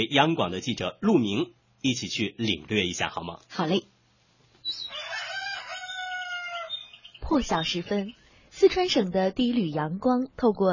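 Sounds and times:
speech: 0.0s - 3.9s, 4.7s - 4.9s, 7.3s - 10.7s
black rooster crowing: 4.8s - 7.0s.

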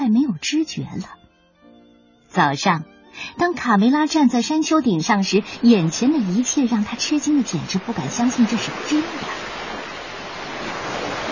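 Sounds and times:
speech: 0.2s - 1.2s, 2.3s - 9.4s
sea waves: 3.2s - 11.3s.

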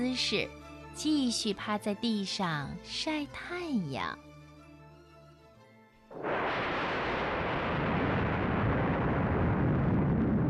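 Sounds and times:
speech: 0.0s - 4.3s, 6.1s - 6.6s
loud rumbling boom: 6.1s - 10.4s.

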